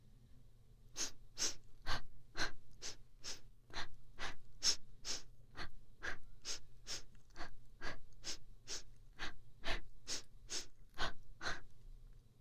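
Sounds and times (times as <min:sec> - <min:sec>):
breathing while running in the right ear: 0:01.0 - 0:11.8.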